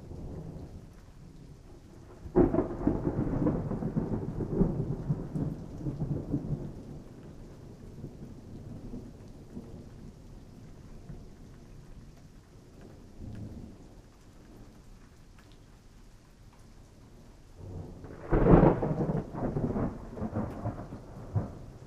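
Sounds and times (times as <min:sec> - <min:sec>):
thunderstorm thunder: 0:02.2 - 0:07.0, 0:17.6 - 0:21.8.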